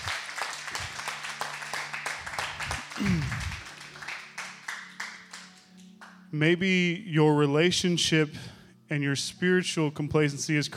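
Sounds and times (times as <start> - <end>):
audience clapping: 0.0 - 6.3
speech: 3.0 - 3.5, 6.4 - 10.7.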